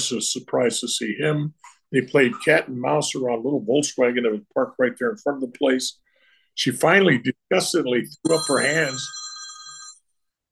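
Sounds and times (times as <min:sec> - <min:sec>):
speech: 0:00.0 - 0:06.0, 0:06.6 - 0:09.2
telephone ringing: 0:08.2 - 0:10.1.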